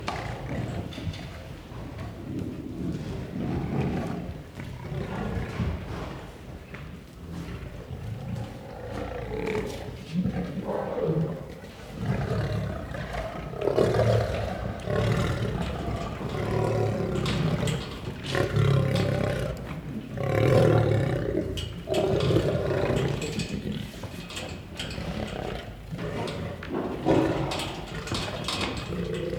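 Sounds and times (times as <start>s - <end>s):
lion growling and roaring: 0.0s - 6.3s, 7.2s - 29.3s.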